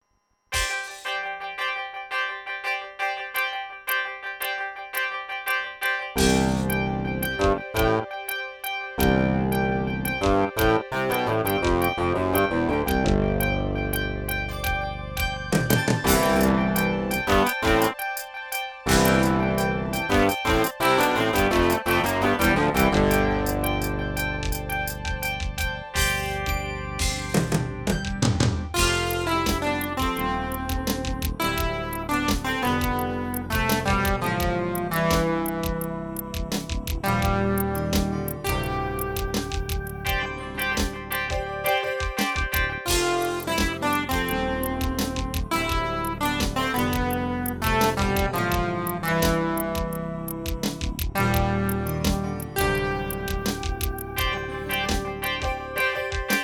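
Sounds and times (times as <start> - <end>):
Wavestation synthesizer: 0.5 - 56.4.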